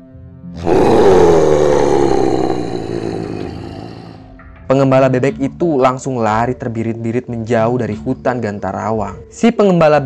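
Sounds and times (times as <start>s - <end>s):
eerie echoing groan from the forest: 0.6s - 4.4s
speech: 4.8s - 10.0s.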